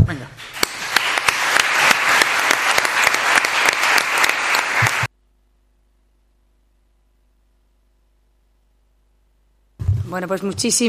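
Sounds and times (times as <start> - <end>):
crowd clapping: 0.4 - 5.1
speech: 10.1 - 10.8.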